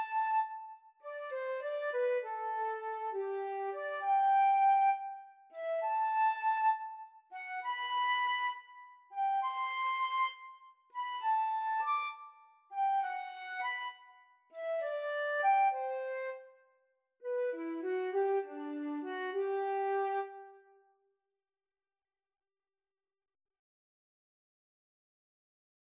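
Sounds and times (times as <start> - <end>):
flute in pastorale duet: 0.0 - 16.6, 17.3 - 20.7.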